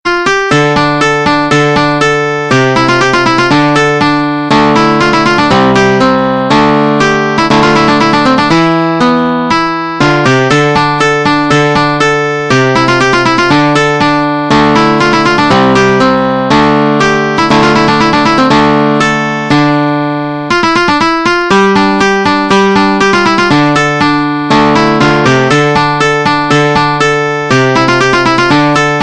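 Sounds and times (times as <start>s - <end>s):
slow piano: 0.2s - 29.0s.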